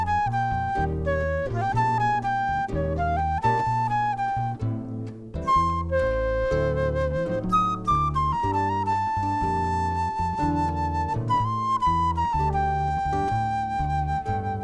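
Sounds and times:
jazz harp trio playing: 0.0s - 14.6s.

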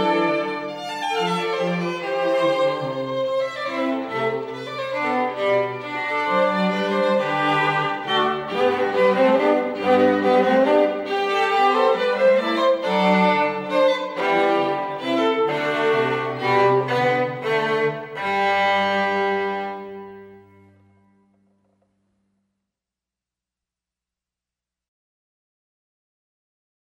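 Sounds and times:
classical string trio playing a minuet: 0.0s - 21.2s.

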